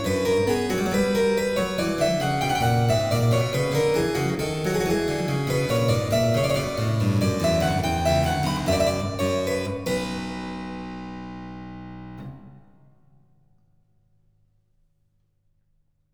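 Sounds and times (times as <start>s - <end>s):
keyboard suite piece in C minor: 0.0s - 12.3s.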